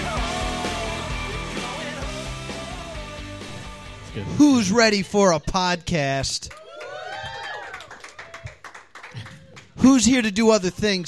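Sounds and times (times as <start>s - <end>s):
speech: 4.2s - 6.6s, 9.9s - 11.0s
audience clapping: 6.3s - 10.0s.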